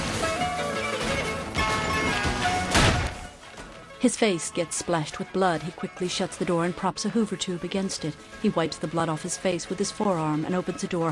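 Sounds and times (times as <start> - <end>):
window glass smashing: 1.0 - 3.4
gunshots shooting out a window: 2.6 - 3.3
speech: 4.0 - 11.1.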